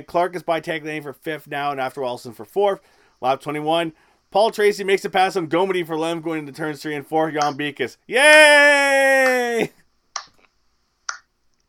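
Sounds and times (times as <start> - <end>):
speech: 0.0 - 9.8
slow clap: 8.2 - 10.4.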